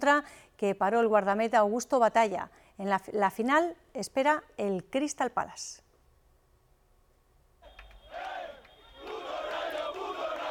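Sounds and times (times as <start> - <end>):
speech: 0.0 - 5.8
football fans celebrating in the streets: 7.6 - 10.4.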